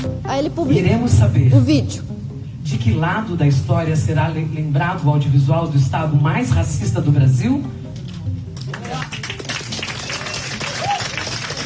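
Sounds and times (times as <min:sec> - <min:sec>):
speech: 0:00.3 - 0:07.8
legislators applauding: 0:08.6 - 0:11.6.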